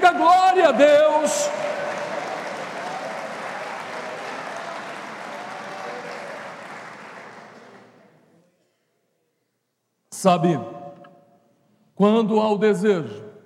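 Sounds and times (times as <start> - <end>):
audience applauding: 0.0 - 8.1
speech: 0.7 - 1.9, 10.2 - 10.8, 12.0 - 13.2.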